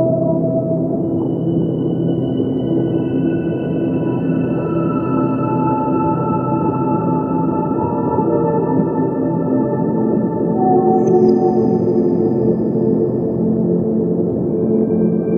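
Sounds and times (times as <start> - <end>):
whale song: 0.0 - 15.3.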